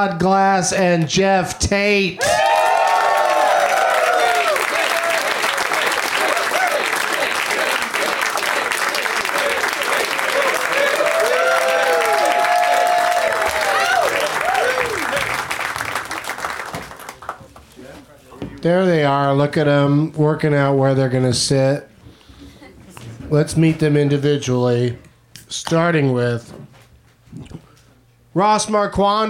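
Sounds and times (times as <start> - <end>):
speech: 0.0 - 2.5, 18.6 - 21.9, 23.3 - 26.6, 28.4 - 29.2
whoops and shouts of cheering: 2.2 - 5.4, 6.2 - 6.9, 10.3 - 15.3
crowd applause: 2.2 - 17.6.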